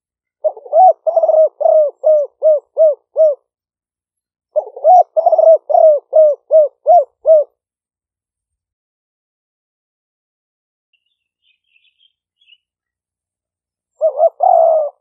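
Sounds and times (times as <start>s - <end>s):
spotted dove cooing: 0.4s - 3.5s, 4.5s - 7.5s, 13.9s - 15.0s.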